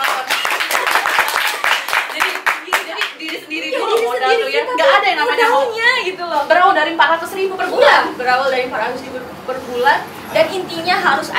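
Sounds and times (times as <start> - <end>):
audience clapping: 0.0 - 4.2
laughter: 0.4 - 6.0
speech: 4.2 - 11.3.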